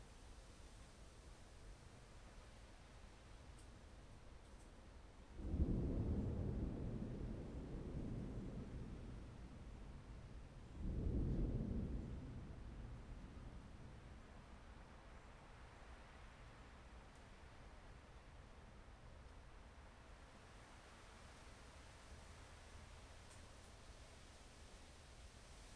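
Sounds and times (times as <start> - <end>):
thunderstorm: 5.4 - 15.1.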